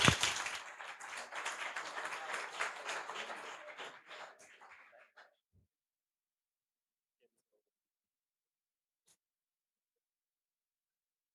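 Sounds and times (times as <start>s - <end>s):
audience applause: 0.0s - 5.4s.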